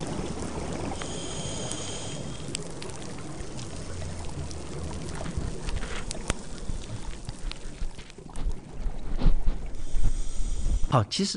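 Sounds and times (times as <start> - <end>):
underwater bubbling and gurgling of scuba divers: 0.0 - 10.9
dive gear clicks and rubs: 4.5 - 10.8
speech: 10.9 - 11.3.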